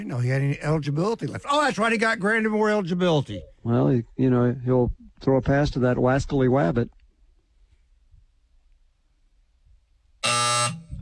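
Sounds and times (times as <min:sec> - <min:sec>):
speech: 0:00.0 - 0:07.0
buzzer sounding: 0:10.2 - 0:11.0.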